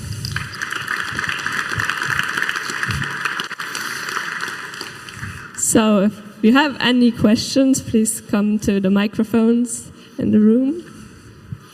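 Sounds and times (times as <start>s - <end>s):
audience applause: 0.0s - 5.6s
speech: 5.7s - 10.9s.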